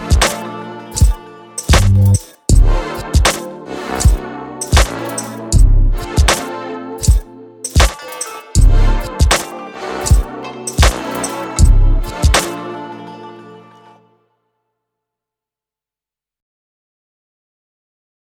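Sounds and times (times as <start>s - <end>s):
harp beat: 0.0s - 12.6s.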